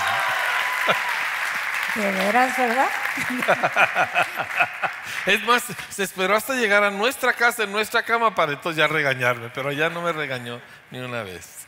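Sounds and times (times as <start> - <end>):
audience applause: 0.0 - 5.9
speech: 0.9 - 1.2, 1.9 - 11.6
laughter: 3.2 - 5.9.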